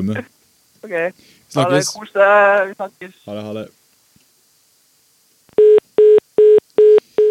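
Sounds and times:
speech: 0.0 - 3.8
telephone beeps at the end of a call: 5.6 - 7.3.

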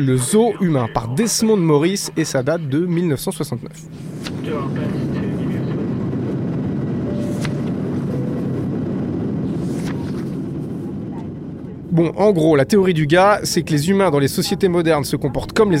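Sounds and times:
speech: 0.0 - 5.0, 12.0 - 15.7
airplane engine roar during takeoff: 3.8 - 15.7.

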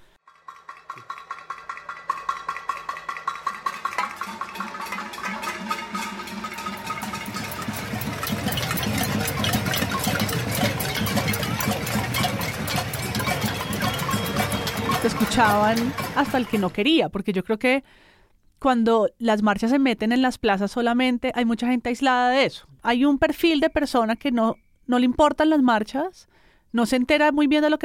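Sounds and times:
city ambience at nightfall: 3.0 - 16.8
speech: 15.3 - 27.8.

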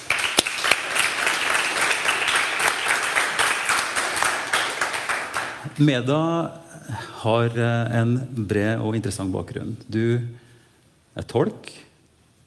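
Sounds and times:
audience applause: 0.0 - 5.7
speech: 5.8 - 10.4, 11.2 - 11.8.

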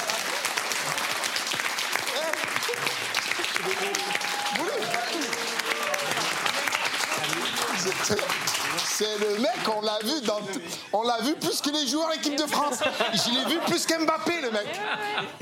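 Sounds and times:
crowd applauding: 0.0 - 12.2
laughter: 2.2 - 8.4, 9.4 - 15.4
speech: 7.9 - 8.4, 9.0 - 15.4.

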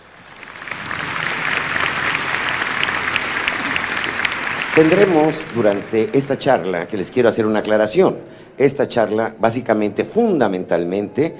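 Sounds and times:
audience applause: 0.0 - 7.6
speech: 4.8 - 11.3.

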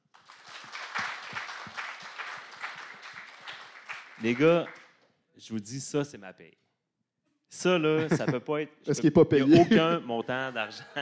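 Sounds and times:
audience applause: 0.1 - 4.9
speech: 4.2 - 4.8, 5.4 - 6.7, 7.5 - 11.0
laughter: 8.0 - 8.5, 9.3 - 11.0.

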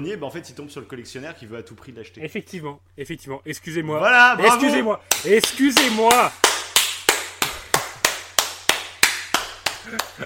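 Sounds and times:
speech: 0.0 - 6.5, 9.8 - 10.2
hands clapping: 5.1 - 10.2.

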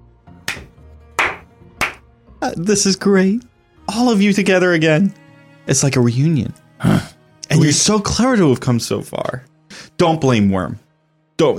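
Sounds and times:
hand claps: 0.5 - 2.0
speech: 2.4 - 10.8, 11.4 - 11.5.

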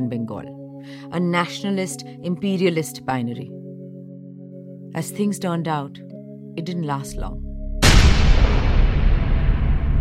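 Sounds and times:
speech: 0.0 - 3.6, 5.0 - 7.4
bomb blast explosion in Muzaffarpur: 7.8 - 10.0.

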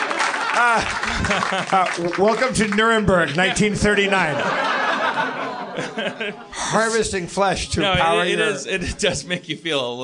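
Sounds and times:
audience applause: 0.0 - 6.1
laughter: 0.0 - 9.9
speech: 0.6 - 10.0.

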